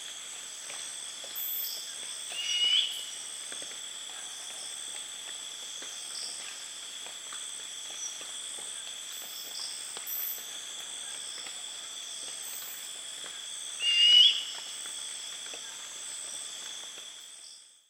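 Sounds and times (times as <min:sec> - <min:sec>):
Ketupa zeylonensis brown fish owl calling: 0:13.8 - 0:14.5.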